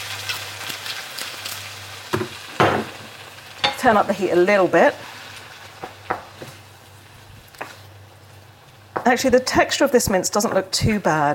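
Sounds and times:
wine sizzling as poured into hot pan: 0.0 - 9.0
speech: 3.8 - 5.1, 9.1 - 11.3.

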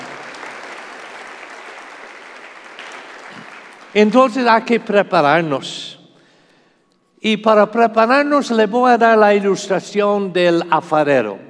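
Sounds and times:
audience applause: 0.0 - 4.1
speech: 3.9 - 6.0, 7.2 - 11.4.

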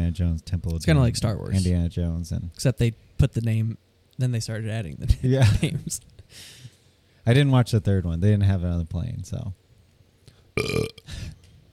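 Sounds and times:
speech: 0.1 - 9.6, 10.6 - 11.4
burp: 10.6 - 11.1.

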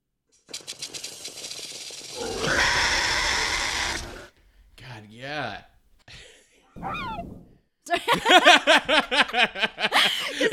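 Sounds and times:
dinosaur call blended from swan, hawk and rattlesnake sounds: 2.2 - 4.3
laughter: 7.9 - 10.5
speech: 8.1 - 9.7.

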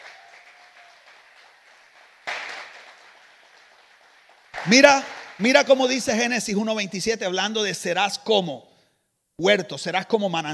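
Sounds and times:
audience applause: 0.0 - 6.0
speech: 4.6 - 8.7, 9.4 - 10.5.

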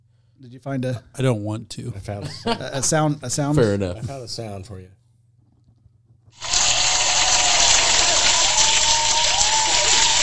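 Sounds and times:
speech: 0.4 - 5.0
laughter: 2.2 - 3.1
crowd cheering from a soundboard: 6.4 - 10.2.

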